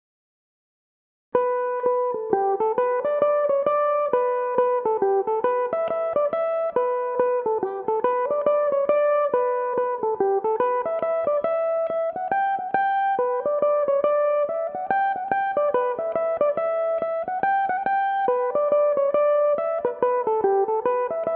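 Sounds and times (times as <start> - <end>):
Irish mandolin playing tunes in E dorian: 1.4 - 21.3.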